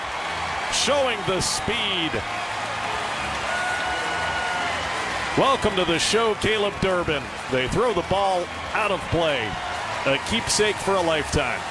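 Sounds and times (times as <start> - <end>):
crowd standing ovation at a major league baseball game: 0.0 - 11.6
speech: 0.8 - 2.6, 5.4 - 11.6.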